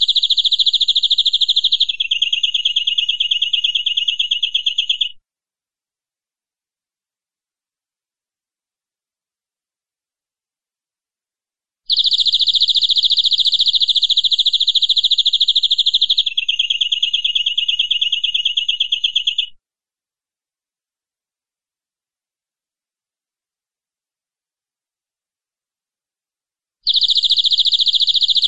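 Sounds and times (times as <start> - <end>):
canary singing: 0.0 - 5.2, 11.9 - 19.6, 26.9 - 28.4.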